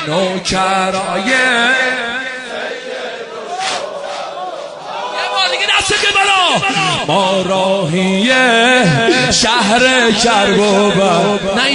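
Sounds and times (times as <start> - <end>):
speech: 0.0 - 2.7, 5.6 - 11.7
crowd chanting Karbala refrains at a religious mourning gathering: 0.0 - 7.6, 10.0 - 11.7.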